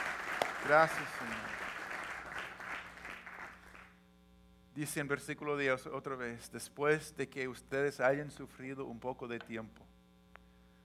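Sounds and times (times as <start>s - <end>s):
audience applause: 0.0s - 3.9s
speech: 0.6s - 1.6s, 4.8s - 9.9s.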